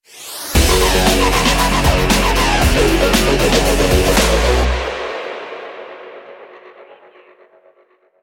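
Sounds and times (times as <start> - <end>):
music stinger: 0.2 - 7.6.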